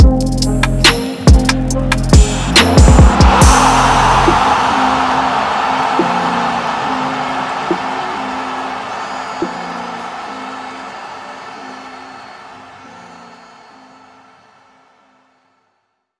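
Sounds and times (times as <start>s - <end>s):
trap beats: 0.0s - 8.7s.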